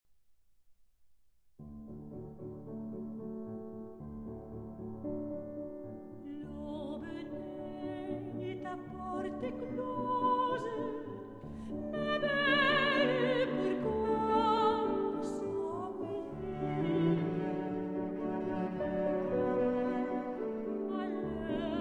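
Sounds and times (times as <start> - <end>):
French love song: 6.1 - 21.7.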